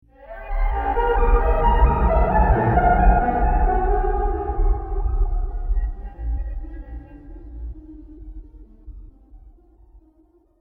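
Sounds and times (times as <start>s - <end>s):
scary soundscape: 0.3s - 7.8s.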